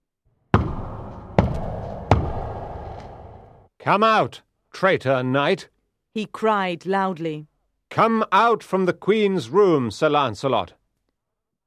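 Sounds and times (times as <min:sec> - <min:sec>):
heavy banging on a door: 0:00.6 - 0:03.3
speech: 0:03.8 - 0:10.8.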